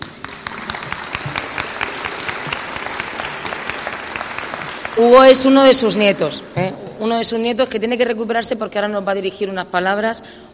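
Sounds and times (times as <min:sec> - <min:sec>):
audience applause: 0:00.0 - 0:06.0
speech: 0:05.0 - 0:10.5.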